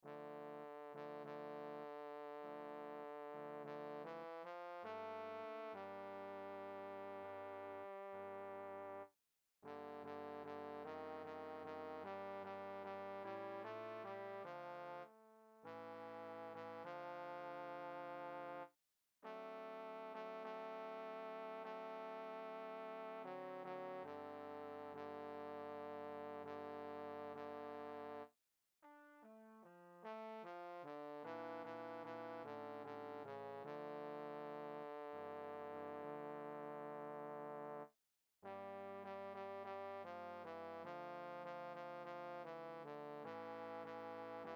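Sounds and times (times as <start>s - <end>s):
bass: 0.1s - 9.0s, 9.7s - 15.0s, 15.7s - 18.6s, 19.3s - 28.2s, 30.1s - 44.5s.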